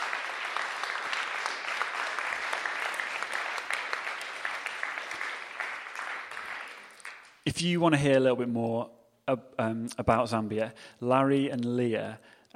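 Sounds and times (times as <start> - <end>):
audience applause: 0.0 - 7.4
speech: 7.5 - 12.4.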